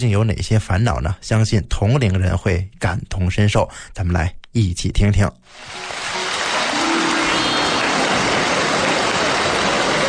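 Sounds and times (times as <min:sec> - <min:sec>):
speech: 0:00.0 - 0:06.0
audience applause: 0:05.6 - 0:10.0.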